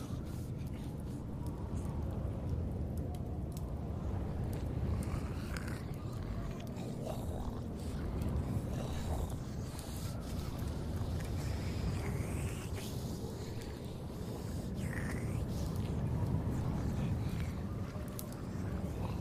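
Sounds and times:
dense steady low rumble of a zombie apocalypse ambience: 0:00.0 - 0:19.2
faint groan-like calls: 0:00.0 - 0:19.2.

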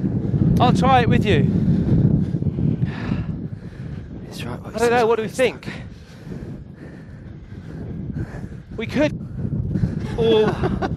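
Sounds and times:
wind blowing on the microphone: 0:00.0 - 0:10.9
speech: 0:00.6 - 0:01.6, 0:04.3 - 0:05.8, 0:08.8 - 0:09.2, 0:10.1 - 0:10.9
laughter: 0:10.1 - 0:10.9.

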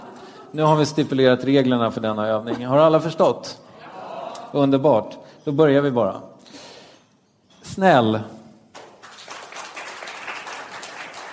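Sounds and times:
speech: 0:00.5 - 0:03.6, 0:04.5 - 0:06.3, 0:07.8 - 0:08.4
scattered audience clapping: 0:08.7 - 0:11.3.

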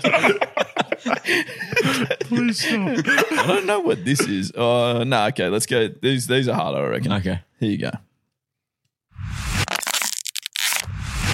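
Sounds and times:
laughter: 0:00.0 - 0:04.6
speech: 0:01.3 - 0:08.1
plastic water bottle being scrunched up: 0:09.7 - 0:10.9.

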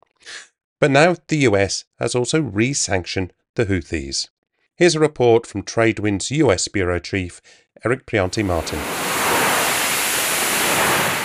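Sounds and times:
speech: 0:00.8 - 0:09.0
U.S. Navy fighter jet taking off from aircraft carrier USS Dwight D. Eisenhower: 0:08.2 - 0:11.2.

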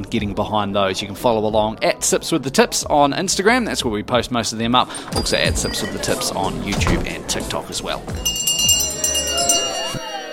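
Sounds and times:
speech: 0:00.0 - 0:08.8
last call bell ringing: 0:05.0 - 0:06.6, 0:08.1 - 0:10.3.

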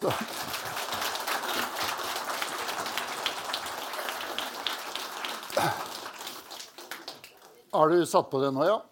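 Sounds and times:
speech: 0:00.0 - 0:00.3, 0:07.7 - 0:08.8
crowd applauding: 0:00.0 - 0:07.8.

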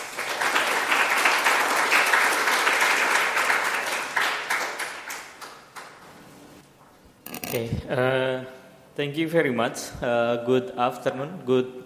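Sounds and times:
audience applause welcoming a speaker at an evening talk: 0:00.0 - 0:06.0
speech: 0:07.5 - 0:11.8.

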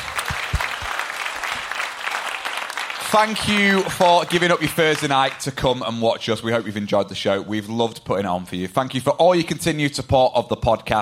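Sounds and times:
audience applause: 0:00.0 - 0:05.5
speech: 0:03.1 - 0:11.0.

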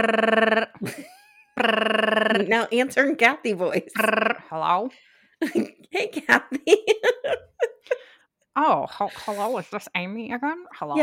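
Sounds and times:
voice imitating a ringing phone: 0:00.0 - 0:00.8, 0:01.6 - 0:02.7, 0:04.0 - 0:04.6
speech: 0:00.0 - 0:08.0, 0:08.6 - 0:11.0
laughter: 0:05.4 - 0:08.0.

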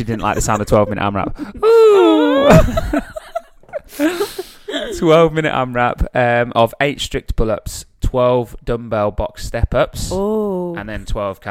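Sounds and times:
speech: 0:00.0 - 0:03.2, 0:04.0 - 0:04.3, 0:04.9 - 0:11.4
laughter: 0:00.0 - 0:05.2
yawning: 0:01.6 - 0:02.8.

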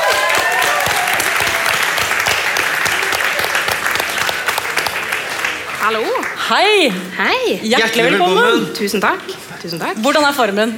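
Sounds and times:
studio audience applause: 0:00.0 - 0:06.8
speech: 0:05.9 - 0:10.7.

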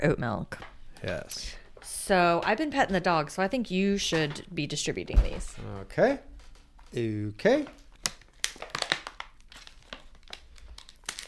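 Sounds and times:
speech: 0:00.0 - 0:06.3, 0:06.9 - 0:07.8
bag being opened, crinkling: 0:07.8 - 0:11.2.

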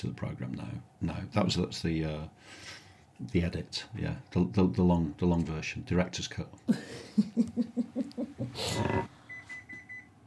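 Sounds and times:
speech: 0:00.0 - 0:09.1
laughter: 0:06.7 - 0:08.7
oven timer beeping for baking biscuits: 0:09.3 - 0:10.2.

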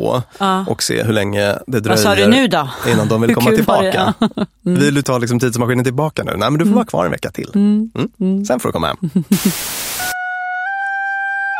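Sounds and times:
speech: 0:00.0 - 0:10.2
burst of noise: 0:09.4 - 0:10.2
simple homemade bagpipe built from a recorder playing a two-note drone: 0:10.1 - 0:11.5.

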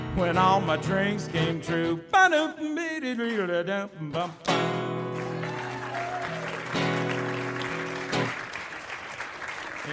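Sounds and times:
speech: 0:00.2 - 0:05.0
audience applause: 0:05.1 - 0:09.9.

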